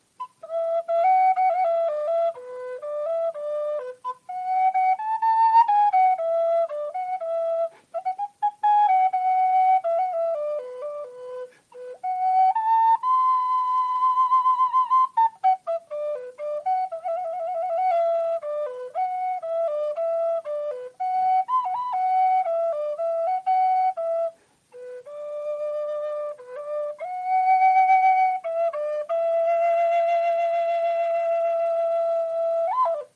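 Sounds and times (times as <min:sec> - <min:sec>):
flute melody: 0:00.0 - 0:33.1.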